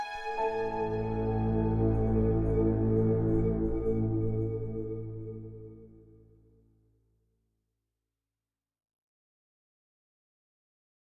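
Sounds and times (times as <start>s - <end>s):
suspense music: 0.0s - 6.4s.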